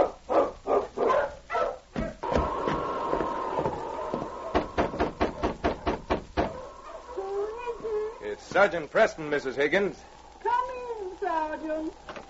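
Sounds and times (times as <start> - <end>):
sled dogs barking: 0.0 - 8.3
speech: 8.6 - 10.1, 11.4 - 12.1.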